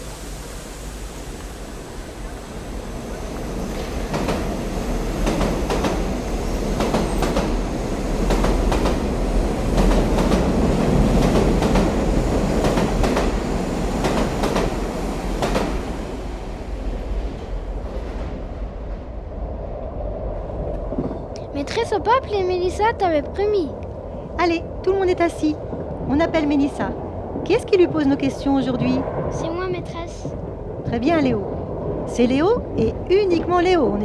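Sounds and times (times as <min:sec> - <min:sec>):
train rumbling: 0:00.0 - 0:34.0
train wheels clacking: 0:01.3 - 0:16.0
speech: 0:22.0 - 0:23.8, 0:24.4 - 0:31.5, 0:32.1 - 0:34.0.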